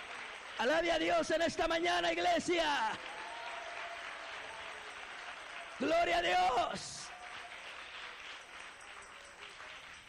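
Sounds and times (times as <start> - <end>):
congregation applause in a church service: 0.0 - 10.0
speech: 0.6 - 3.2, 5.8 - 7.1.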